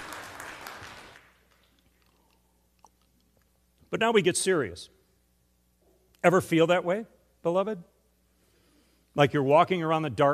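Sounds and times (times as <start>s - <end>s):
audience applause: 0.0s - 1.4s
speech: 3.9s - 5.0s, 6.2s - 7.9s, 9.2s - 10.3s.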